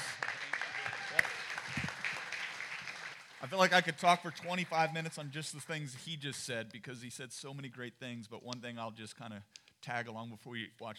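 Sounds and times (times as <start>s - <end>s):
audience applause: 0.0s - 5.0s
speech: 3.4s - 10.9s.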